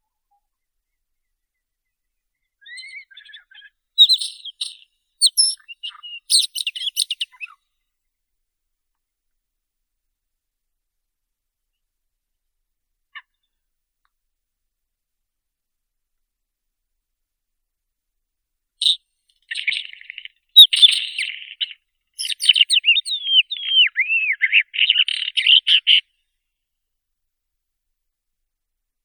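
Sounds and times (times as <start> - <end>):
isabelline wheatear Oenanthe isabellina calling: 2.6 - 7.6, 18.8 - 26.0.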